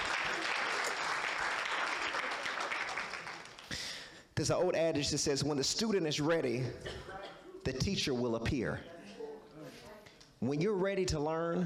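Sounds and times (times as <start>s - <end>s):
audience clapping: 0.0s - 4.2s
speech: 4.4s - 9.0s, 10.4s - 11.6s.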